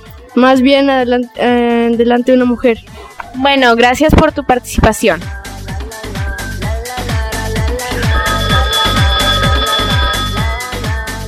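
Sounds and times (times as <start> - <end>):
speech: 0.4 - 5.4
telephone ringing for an incoming call to a radio show: 7.7 - 10.9.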